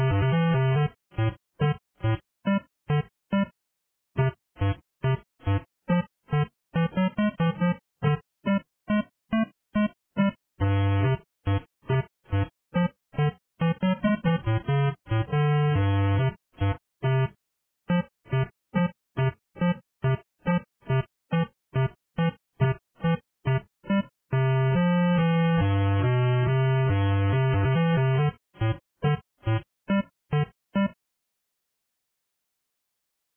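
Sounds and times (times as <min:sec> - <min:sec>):
8-bit background music: 0:00.0 - 0:01.8, 0:09.8 - 0:29.6
bass: 0:00.0 - 0:03.4, 0:04.2 - 0:30.9.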